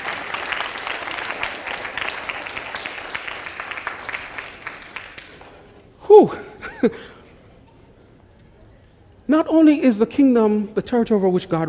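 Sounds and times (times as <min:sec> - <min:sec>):
crowd applause: 0:00.0 - 0:05.8
speech: 0:06.1 - 0:07.1, 0:09.3 - 0:11.6.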